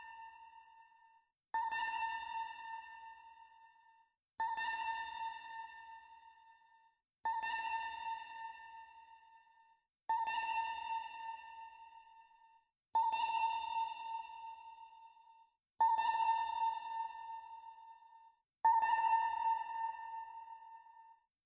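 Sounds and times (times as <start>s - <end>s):
sonar: 0.0s - 21.3s.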